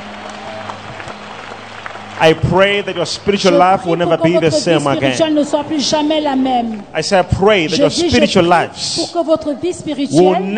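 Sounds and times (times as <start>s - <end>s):
audience applauding: 0.0s - 5.7s
low electrical hum: 0.0s - 10.5s
speech: 2.2s - 10.5s.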